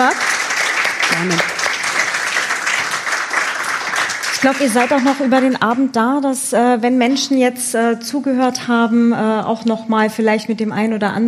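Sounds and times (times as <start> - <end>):
audience applause: 0.0 - 5.7
speech: 1.1 - 1.6, 4.4 - 11.2.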